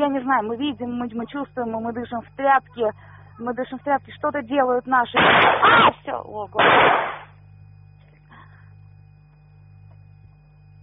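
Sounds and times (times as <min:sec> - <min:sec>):
speech: 0:00.0 - 0:07.2
gunshots: 0:05.2 - 0:06.0, 0:06.6 - 0:07.3.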